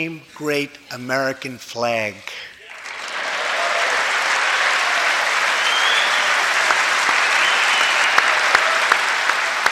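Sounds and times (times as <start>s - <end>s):
speech: 0.0s - 2.5s
loud clapping in front of a microphone: 2.7s - 9.6s.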